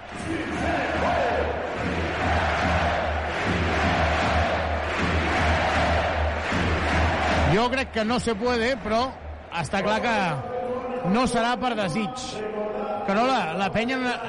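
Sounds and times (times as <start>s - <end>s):
basketball arena crowd chanting during a Penya game: 0.0s - 7.6s
speech: 7.6s - 14.2s.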